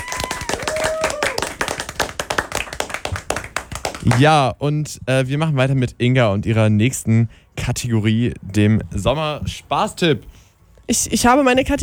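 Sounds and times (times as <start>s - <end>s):
crowd applauding: 0.0s - 4.4s
speech: 4.0s - 11.8s.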